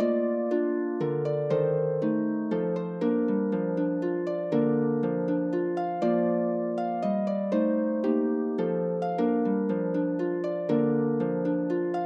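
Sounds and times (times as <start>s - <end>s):
harp waltz: 0.0s - 12.0s.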